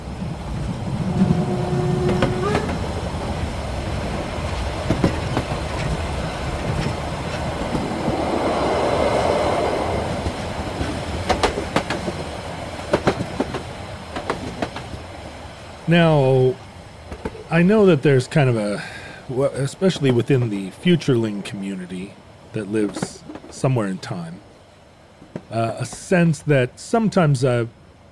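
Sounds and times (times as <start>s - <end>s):
freight train rolling on rails: 0.0s - 28.1s
wheels clickety-clack over the track: 1.0s - 8.2s, 10.1s - 15.1s, 17.0s - 17.5s, 22.6s - 23.6s
high metallic wheel squeals: 1.3s - 2.8s
speech: 15.9s - 16.6s, 17.5s - 24.5s, 25.4s - 27.8s.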